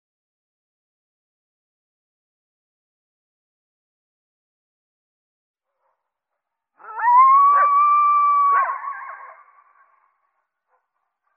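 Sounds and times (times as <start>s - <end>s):
coyote howling: 6.8s - 9.7s.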